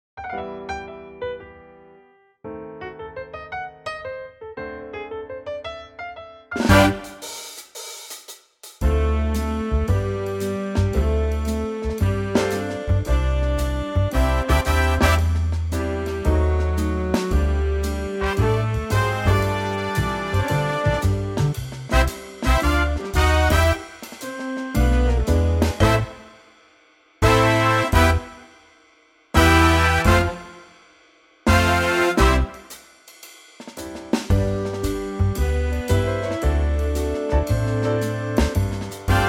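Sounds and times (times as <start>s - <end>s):
backing track in C: 6.6s - 7.4s, 8.8s - 26.5s, 27.2s - 28.5s, 29.4s - 30.7s, 31.5s - 32.8s, 34.2s - 39.2s.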